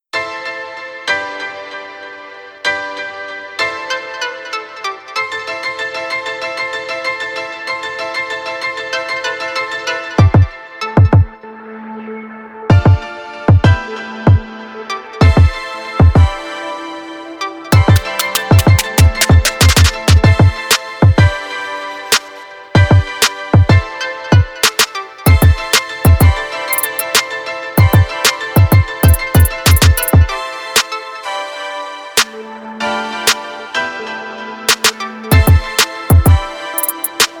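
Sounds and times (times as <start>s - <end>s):
instrumental music: 0.2s - 37.3s.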